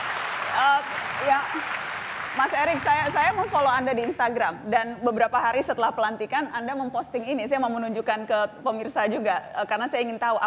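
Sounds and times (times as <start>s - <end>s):
audience applause: 0.0s - 4.2s
speech: 0.6s - 1.8s, 2.4s - 10.4s.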